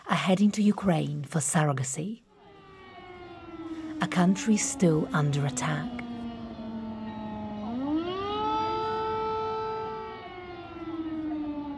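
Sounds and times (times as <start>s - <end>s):
speech: 0.2s - 2.3s, 4.0s - 6.0s
air raid siren wailing: 2.3s - 11.7s.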